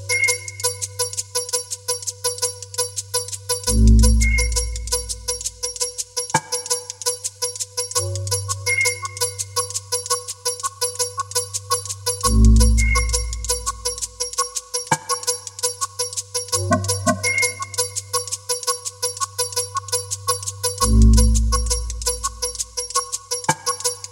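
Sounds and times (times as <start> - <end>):
whistles: 0.0 - 1.0, 4.1 - 5.3, 8.7 - 9.8, 12.6 - 13.8, 17.2 - 18.2
bells: 0.0 - 24.0.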